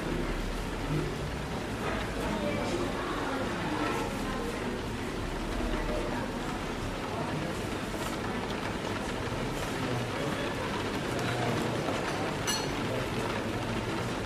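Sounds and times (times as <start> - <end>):
people chattering quietly in a coffee shop: 0.0 - 14.2
rain pattering on the window: 0.0 - 14.2
coffee cups clinking: 12.4 - 12.9.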